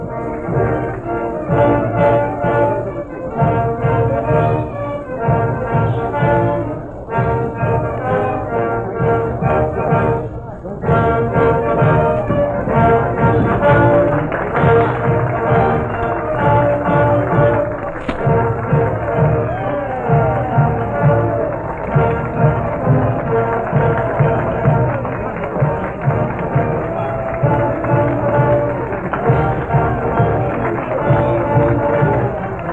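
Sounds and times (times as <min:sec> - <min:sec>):
high school band playing ceremonial music: 0:00.0 - 0:32.7.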